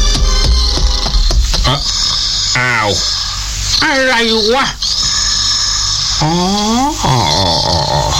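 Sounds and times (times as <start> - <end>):
steady hum: 0.0 - 8.1
speech: 2.9 - 3.2, 3.8 - 5.0, 6.2 - 8.1
sleeping dog snoring: 6.7 - 8.1.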